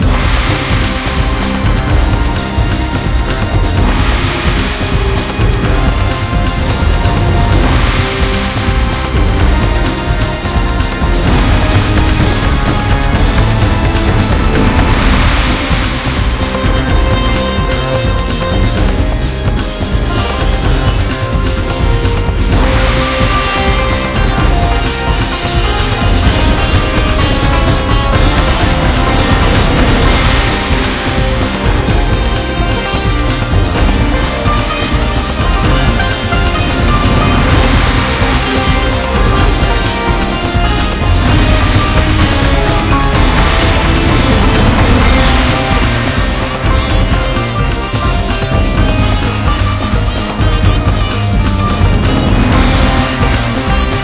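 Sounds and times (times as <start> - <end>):
battle music loop: 0.0 - 54.0.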